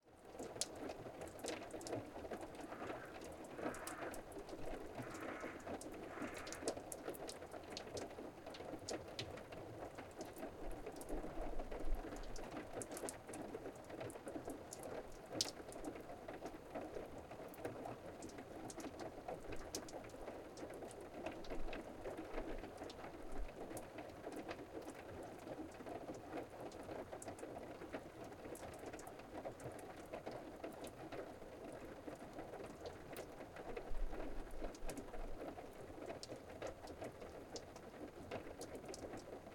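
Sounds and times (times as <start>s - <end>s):
melted snow water dripping from a roof: 0.2s - 39.5s.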